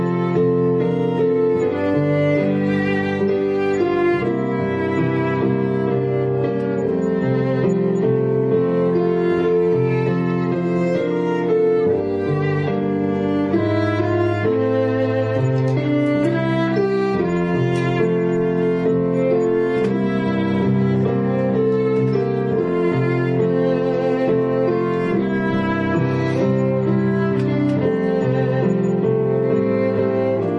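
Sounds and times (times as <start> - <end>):
piano in a prelude: 0.0 - 30.5
violin in a prelude: 0.0 - 30.5.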